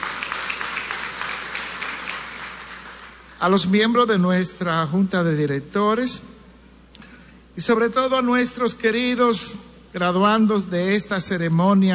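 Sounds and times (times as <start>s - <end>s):
audience applause: 0.0s - 3.4s
speech: 3.4s - 6.4s, 7.6s - 11.9s.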